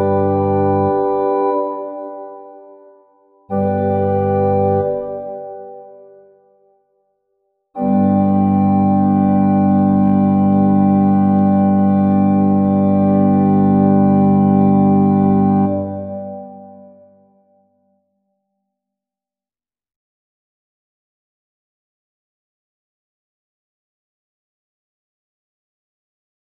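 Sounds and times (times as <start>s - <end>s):
organ duet transcription of an opera chorus: 0.0s - 2.3s, 3.5s - 5.7s, 7.8s - 16.4s.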